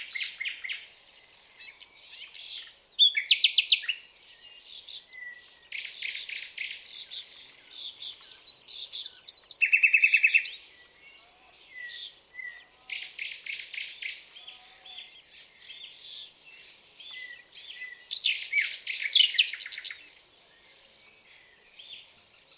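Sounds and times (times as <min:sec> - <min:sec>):
common nightingale Luscinia megarhynchos song of rapid repeated notes and buzzy trills: 0:00.0 - 0:22.5.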